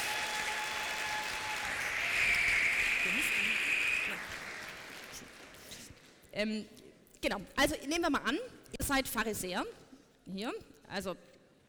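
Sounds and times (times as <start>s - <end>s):
audience applause: 0.0s - 5.7s
speech: 6.4s - 11.3s.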